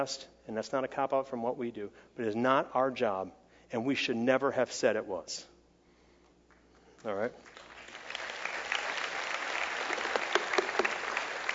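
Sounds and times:
speech: 0.0s - 5.5s, 7.0s - 7.6s
audience applause: 7.5s - 11.5s.

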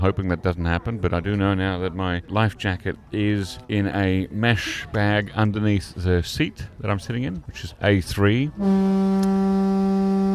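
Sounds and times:
speech: 0.0s - 10.3s
ferry foghorn blast: 8.6s - 10.3s.

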